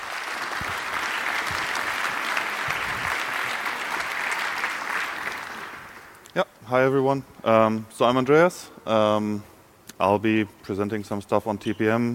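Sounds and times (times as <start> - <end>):
audience clapping: 0.0 - 6.3
speech: 6.4 - 12.1.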